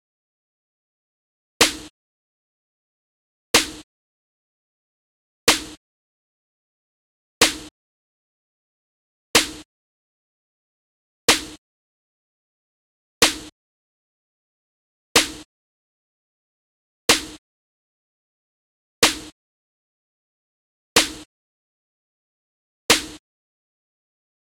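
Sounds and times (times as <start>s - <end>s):
snare noise: 1.6s - 1.9s, 3.6s - 3.8s, 5.5s - 5.8s, 7.4s - 7.7s, 9.4s - 9.7s, 11.3s - 11.6s, 13.2s - 13.5s, 15.2s - 15.5s, 17.1s - 17.4s, 19.0s - 19.4s, 21.0s - 21.3s, 22.9s - 23.2s.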